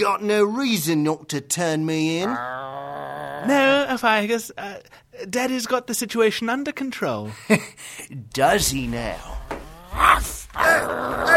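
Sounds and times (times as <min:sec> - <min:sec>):
speech: 0:00.0 - 0:11.3
dog growling and snarling: 0:02.2 - 0:03.7, 0:09.6 - 0:11.3.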